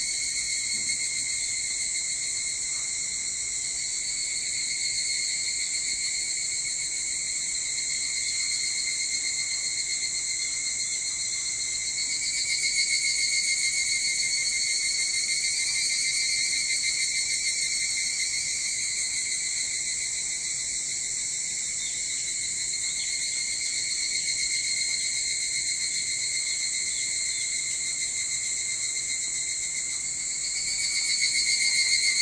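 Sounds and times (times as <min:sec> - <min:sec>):
evening cicadas droning: 0:00.0 - 0:32.1.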